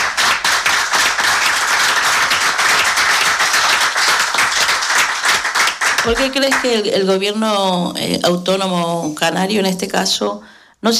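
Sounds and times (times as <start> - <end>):
audience clapping: 0.0 - 7.2
speech: 6.0 - 10.9.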